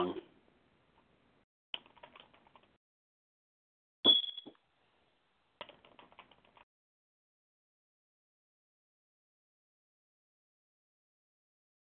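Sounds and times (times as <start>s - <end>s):
typing song lyrics on a computer keyboard: 1.8s - 2.8s, 5.6s - 6.7s.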